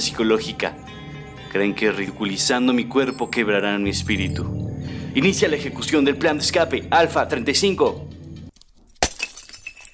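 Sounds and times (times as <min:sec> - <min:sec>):
speech: 0:00.0 - 0:04.6, 0:05.2 - 0:08.1
coffee pot knocked off table, breaking: 0:09.0 - 0:09.9
shards tinkling: 0:09.1 - 0:09.9.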